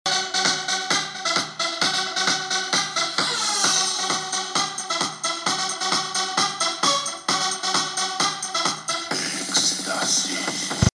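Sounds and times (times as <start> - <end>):
techno music: 0.1 - 10.9.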